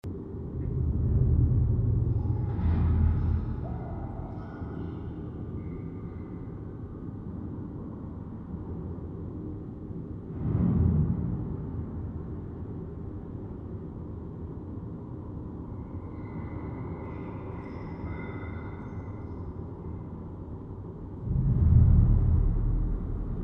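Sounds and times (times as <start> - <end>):
sewer tunnel ambience drone: 0.0 - 23.4.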